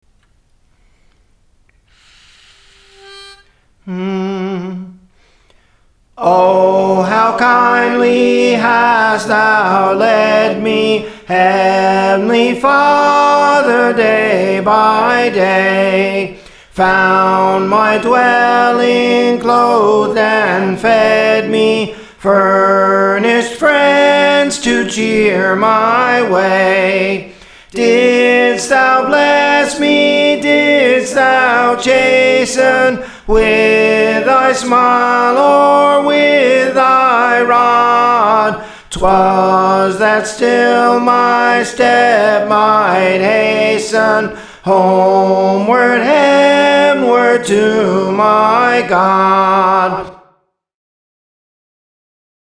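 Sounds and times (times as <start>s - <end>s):
soprano singing songs: 2.7s - 5.1s, 6.2s - 50.1s.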